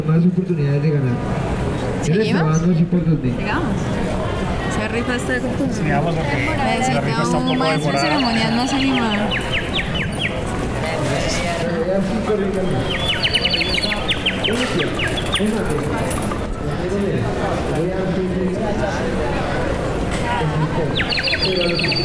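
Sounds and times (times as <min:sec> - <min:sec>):
speech: 0:00.0 - 0:09.8, 0:10.9 - 0:13.2, 0:14.5 - 0:19.6, 0:20.8 - 0:22.0
birds chirping returning to nest: 0:03.5 - 0:17.4, 0:20.4 - 0:22.0.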